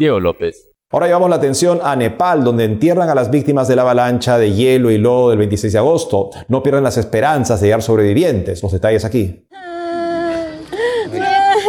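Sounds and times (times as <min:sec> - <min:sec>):
speech: 0:00.0 - 0:09.6
mother weeping inconsolably for her dead son: 0:09.5 - 0:11.6.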